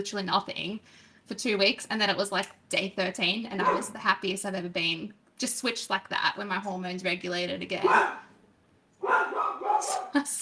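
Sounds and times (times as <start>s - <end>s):
speech: 0.0s - 8.3s, 9.0s - 10.3s
dog barking at a bird outside: 3.6s - 4.0s, 7.8s - 8.3s, 9.0s - 10.2s.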